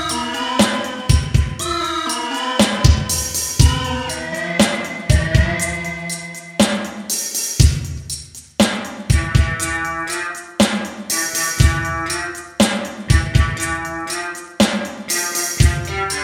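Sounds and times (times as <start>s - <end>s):
synths through Roland SRV-2000: 0.0s - 6.9s
drums through Roland SRV-2000: 0.0s - 16.2s.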